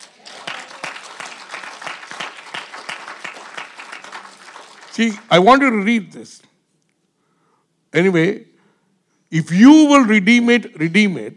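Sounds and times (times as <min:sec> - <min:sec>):
audience applause: 0:00.0 - 0:05.2
speech: 0:05.0 - 0:06.5, 0:07.9 - 0:08.5, 0:09.3 - 0:11.3.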